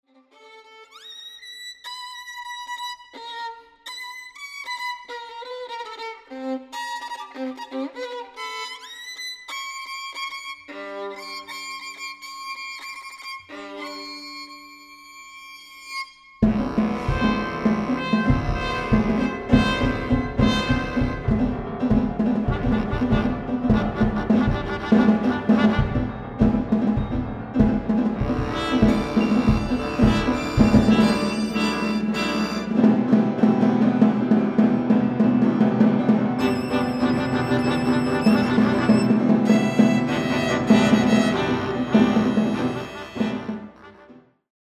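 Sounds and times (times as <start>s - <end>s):
violin concerto: 0.1s - 44.1s.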